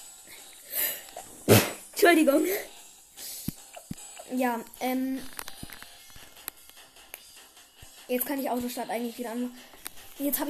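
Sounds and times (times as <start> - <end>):
person sneezing: 1.4 - 1.8
speech: 1.5 - 2.7, 4.3 - 5.4, 8.1 - 10.4.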